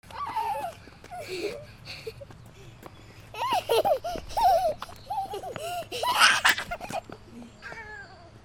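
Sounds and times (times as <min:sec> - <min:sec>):
footsteps: 0:00.0 - 0:08.4.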